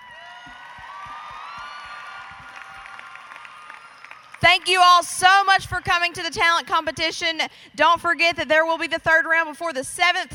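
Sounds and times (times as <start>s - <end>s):
high whistles and cheers: 0.0s - 4.5s
audience applause: 0.0s - 4.8s
speech: 4.5s - 10.3s.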